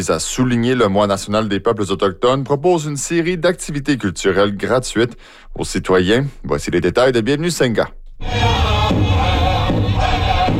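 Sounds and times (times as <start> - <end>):
speech: 0.0 - 9.0
Indigenous powwow chanting at a Toronto festival: 8.2 - 10.5.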